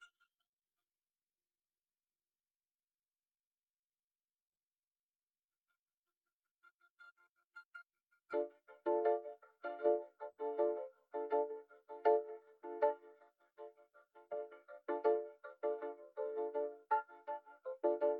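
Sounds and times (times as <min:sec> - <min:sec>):
keyboard: 0:08.3 - 0:18.1.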